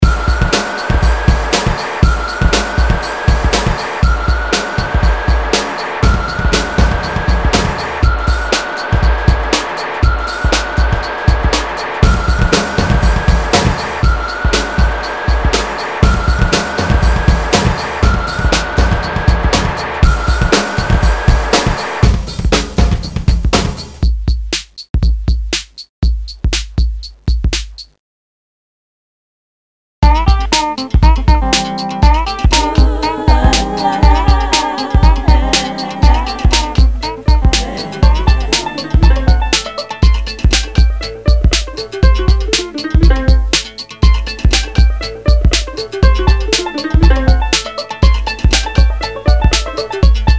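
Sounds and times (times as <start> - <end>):
electro music with banjo: 0.0 - 27.9, 30.0 - 50.3.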